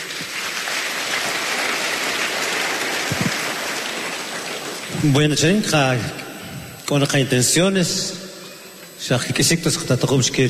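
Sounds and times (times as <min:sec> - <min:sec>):
audience applause: 0:00.0 - 0:06.0
speech: 0:05.0 - 0:06.2, 0:06.9 - 0:08.2, 0:09.0 - 0:10.4.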